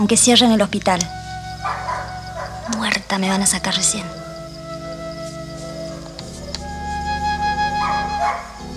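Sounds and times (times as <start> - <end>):
speech: 0.0 - 1.8, 2.7 - 4.2
dog barking: 1.5 - 3.0, 7.8 - 8.6.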